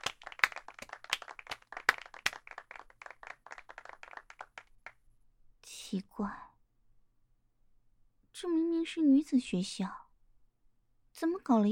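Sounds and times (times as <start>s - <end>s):
applause welcoming a teacher: 0.0s - 5.0s
speech: 5.9s - 6.5s, 8.4s - 10.0s, 11.2s - 11.6s.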